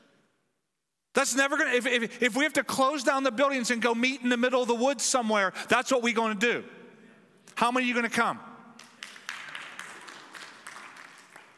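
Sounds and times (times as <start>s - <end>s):
speech: 1.2s - 6.8s, 7.6s - 8.5s
church congregation scattered hand claps: 8.7s - 11.5s.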